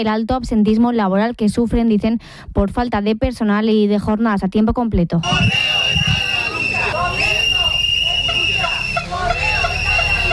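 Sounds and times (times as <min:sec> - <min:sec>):
speech: 0:00.0 - 0:06.1
street protest crowd in front of the main post offices in Las Palmas de Gran Canaria: 0:05.2 - 0:10.3.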